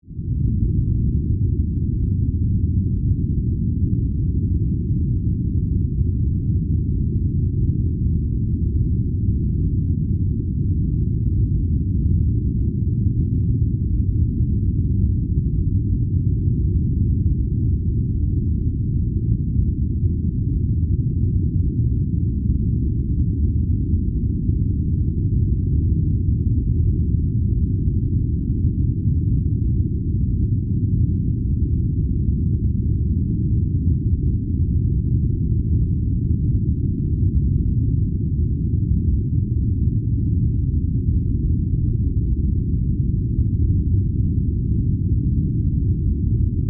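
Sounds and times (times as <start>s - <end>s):
sci-fi warbling drone rumble: 0.1s - 46.6s.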